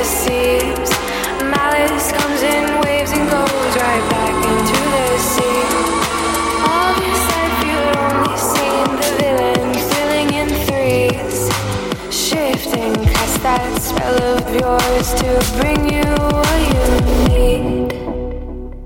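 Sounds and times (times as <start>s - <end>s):
low droning hum: 0.0s - 12.1s, 12.7s - 18.3s
rapid clicking pulses: 0.0s - 17.5s
harsh stuttering low buzz: 0.0s - 17.6s
robot noises of warbling electronic tones: 2.5s - 11.7s.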